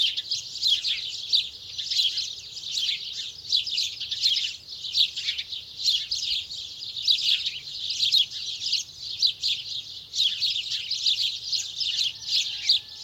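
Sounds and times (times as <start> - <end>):
many house sparrows Passer domesticus chattering: 0.0 - 13.0.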